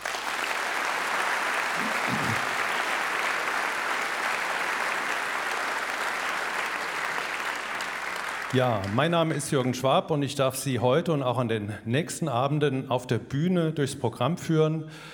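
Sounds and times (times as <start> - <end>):
audience applause: 0.0 - 9.6
speech: 8.5 - 15.1.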